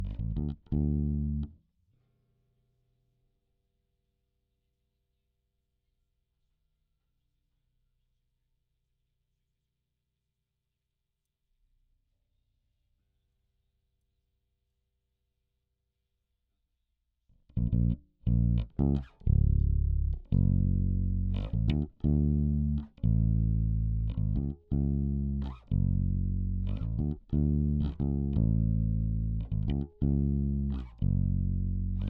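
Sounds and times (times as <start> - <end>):
bass guitar recorded by direct input: 0.0 - 1.6, 17.5 - 32.0.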